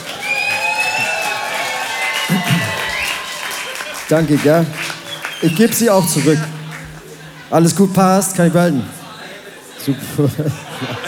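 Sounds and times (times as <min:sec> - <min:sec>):
crowd cheering and shouting: 0:00.0 - 0:07.6
audience applause: 0:00.0 - 0:07.8
laughter: 0:00.0 - 0:11.0
speech: 0:04.1 - 0:04.8, 0:05.4 - 0:06.6, 0:07.5 - 0:09.0, 0:09.8 - 0:11.0.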